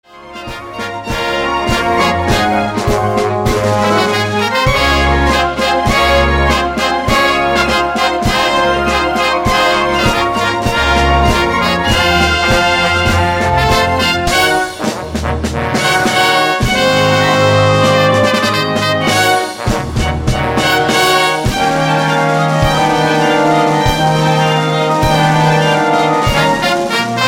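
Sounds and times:
live musical theater orchestra playing a processional: 0:00.0 - 0:27.2.

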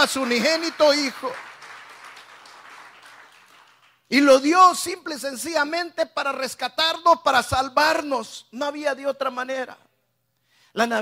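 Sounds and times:
speech: 0:00.0 - 0:01.5, 0:04.1 - 0:09.8, 0:10.8 - 0:11.0
audience applause: 0:00.0 - 0:04.0.

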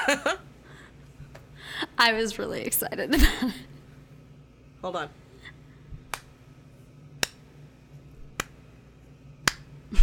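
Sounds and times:
speech: 0:00.0 - 0:00.5, 0:01.7 - 0:03.7, 0:04.8 - 0:05.2
slow clapping: 0:09.4 - 0:09.7.

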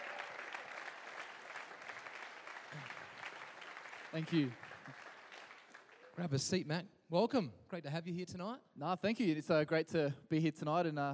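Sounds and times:
audience applause at an evening event: 0:00.0 - 0:06.2
speech: 0:02.7 - 0:03.0, 0:04.1 - 0:05.0, 0:06.2 - 0:11.1.

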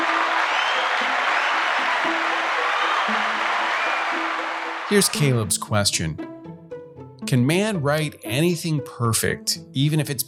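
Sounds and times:
audience applause: 0:00.0 - 0:05.5
speech: 0:04.9 - 0:06.3, 0:07.3 - 0:10.2.

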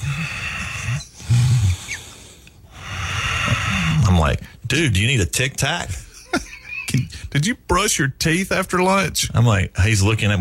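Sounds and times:
voice imitating heavy raspy breathing: 0:00.0 - 0:04.7
speech: 0:04.3 - 0:10.3.

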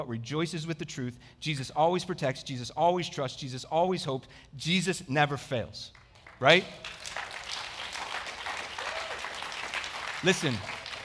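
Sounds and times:
speech: 0:00.0 - 0:07.2, 0:10.2 - 0:10.8
audience clapping: 0:05.9 - 0:11.0.

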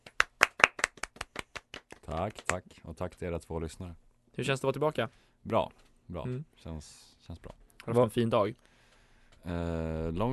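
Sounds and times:
applause for a guest: 0:00.0 - 0:02.6
speech: 0:02.1 - 0:08.7, 0:09.4 - 0:10.3.

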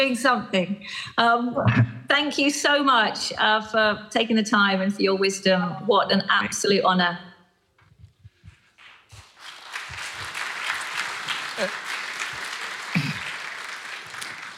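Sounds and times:
speech: 0:00.0 - 0:07.3, 0:11.6 - 0:11.8
audience clapping: 0:08.7 - 0:14.5.

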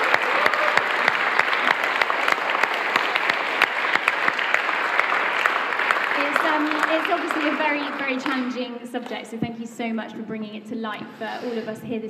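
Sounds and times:
crowd clapping: 0:00.0 - 0:09.2
speech: 0:07.4 - 0:12.0.

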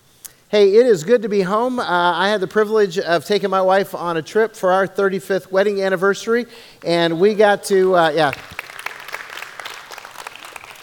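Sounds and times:
speech: 0:00.5 - 0:08.6
audience applause: 0:08.2 - 0:10.8.

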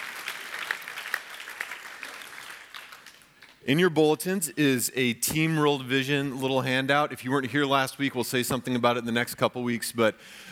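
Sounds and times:
audience clapping in church: 0:00.0 - 0:03.6
speech: 0:03.6 - 0:10.5.

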